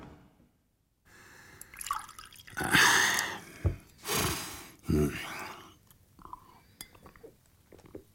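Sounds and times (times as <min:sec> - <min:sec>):
drink pouring into a glass: 0:01.6 - 0:03.4
glass clinking: 0:06.2 - 0:08.0.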